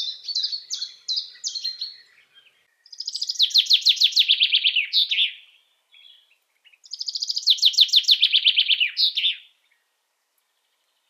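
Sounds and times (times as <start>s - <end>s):
Common chaffinch song: 0.0s - 11.0s.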